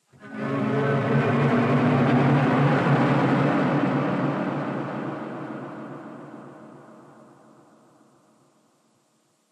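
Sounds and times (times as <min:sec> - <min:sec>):
combat string music: 0:00.2 - 0:06.0.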